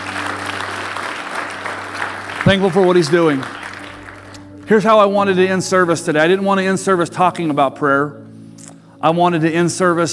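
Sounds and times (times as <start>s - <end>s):
crowd clapping: 0.0s - 4.7s
speech: 2.4s - 3.6s, 4.7s - 8.2s, 9.0s - 10.1s.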